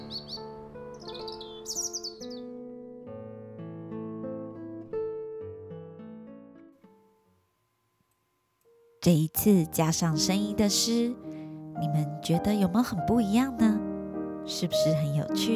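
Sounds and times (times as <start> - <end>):
birds chirping trills: 0.0 - 2.6
speech: 9.0 - 13.9, 14.5 - 15.5.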